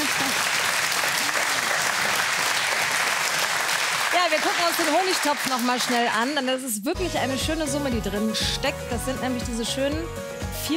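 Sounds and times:
audience applause: 0:00.0 - 0:06.4
speech: 0:04.3 - 0:10.7.

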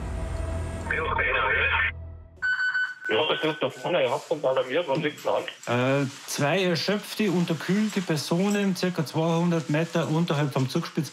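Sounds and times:
speech: 0:01.0 - 0:02.0, 0:03.1 - 0:11.1
mountain rescue alarm at Bergwacht Greinau: 0:02.4 - 0:04.3.

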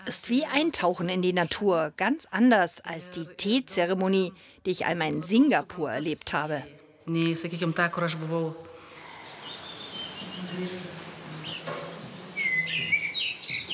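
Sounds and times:
speech: 0:00.0 - 0:08.7
high whistling bird calls: 0:09.0 - 0:10.7, 0:11.4 - 0:13.7
assorted bird chirps and tweets: 0:09.0 - 0:13.7.

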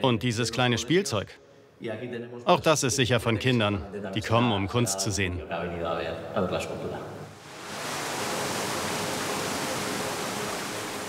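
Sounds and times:
speech: 0:00.0 - 0:07.1
pumped water simulating the surf of the Basque coast: 0:07.4 - 0:11.0.

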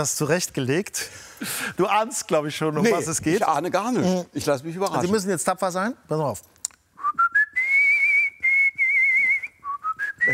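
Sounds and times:
speech: 0:00.0 - 0:06.6
artistic whistling: 0:07.0 - 0:10.3.

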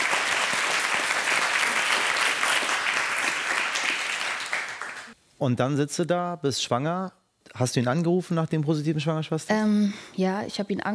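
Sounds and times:
studio audience applause: 0:00.0 - 0:05.2
speech: 0:05.4 - 0:10.9.

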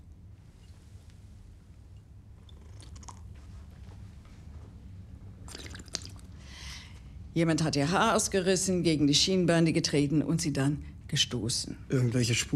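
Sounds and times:
low hum: 0:00.0 - 0:12.5
slurping a drink: 0:05.5 - 0:06.2
speech: 0:07.4 - 0:12.5.

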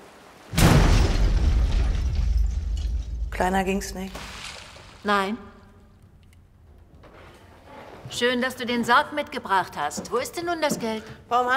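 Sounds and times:
explosion with heavy rumbling roar: 0:00.5 - 0:03.4
speech: 0:03.4 - 0:04.4, 0:05.0 - 0:05.5, 0:08.1 - 0:11.5.

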